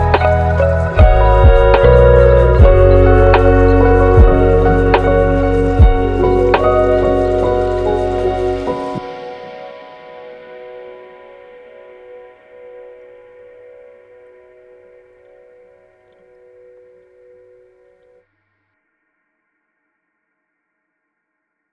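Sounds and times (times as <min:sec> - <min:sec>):
lofi hip hop: 0:00.0 - 0:09.8.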